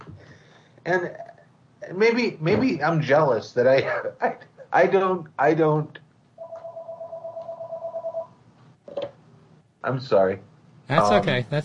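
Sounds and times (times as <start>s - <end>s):
speech: 0.8s - 1.3s, 1.9s - 6.0s, 9.8s - 11.6s
telephone ringing with pulsing electronic tone: 6.4s - 8.4s.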